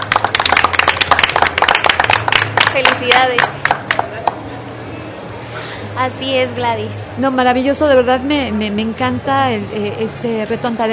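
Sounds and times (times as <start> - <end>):
group applauding young entrepreneurs who won a challenge: 0.0 - 4.5
speech: 2.8 - 3.7, 6.0 - 10.9.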